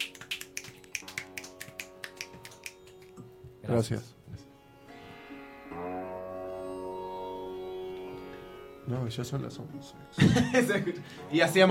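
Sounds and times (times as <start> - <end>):
small crowd snapping fingers instead of applause: 0.0 - 3.4
speech: 3.7 - 4.2, 8.9 - 11.6
laughter: 10.2 - 11.0.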